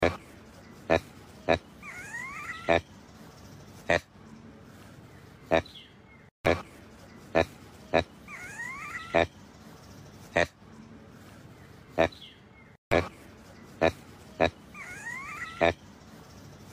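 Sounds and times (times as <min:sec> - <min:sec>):
proboscis monkey giving short gruff grunts: 0:00.0 - 0:02.9, 0:06.5 - 0:09.4, 0:12.9 - 0:15.8.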